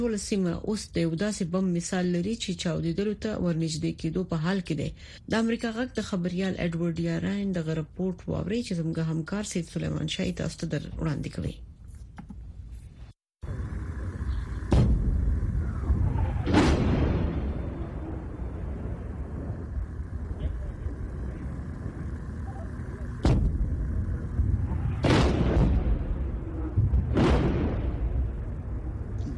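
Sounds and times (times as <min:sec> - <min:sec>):
speech: 0:00.0 - 0:12.3
steady low rumble: 0:13.4 - 0:29.3
gunfire and rocket blasts at the Lebanon–Israel border: 0:14.6 - 0:20.2, 0:23.1 - 0:29.2.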